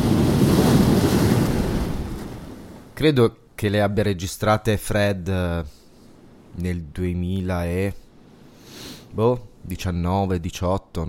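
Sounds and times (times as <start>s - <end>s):
waves breaking on the beach of Giampilieri: 0.0s - 3.0s
wind buffeting: 0.0s - 3.0s
speech: 3.0s - 5.8s, 6.6s - 8.0s, 9.1s - 11.0s.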